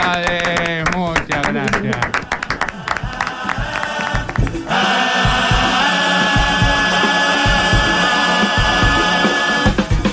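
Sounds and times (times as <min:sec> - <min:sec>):
crowd applauding for a carnival murga group: 0:00.0 - 0:05.7
crowd cheering: 0:00.0 - 0:09.8.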